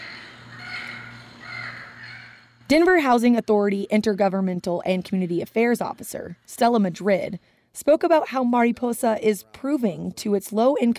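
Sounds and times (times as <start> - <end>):
Yucatan parrot calls played from an educational stairwell button: 0.0 - 2.6
speech: 2.7 - 10.9.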